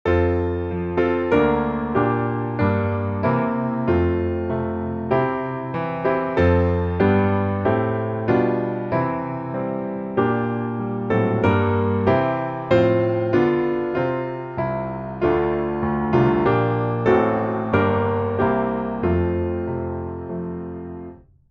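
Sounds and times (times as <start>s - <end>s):
piano: 0.0s - 21.4s.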